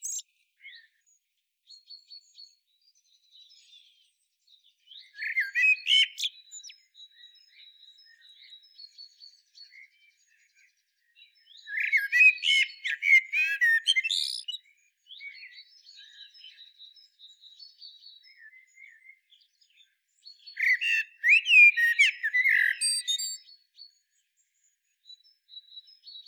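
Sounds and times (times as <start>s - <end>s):
thin high tones from other birds: 0.0s - 0.2s
common blackbird singing: 0.0s - 1.1s, 1.7s - 26.2s.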